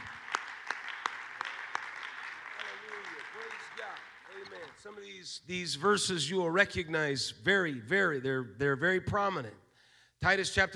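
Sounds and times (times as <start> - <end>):
audience hands clapping in a steady rhythm: 0.0 - 5.0
crowd murmuring: 2.4 - 5.1
speech: 4.6 - 9.6, 10.2 - 10.7.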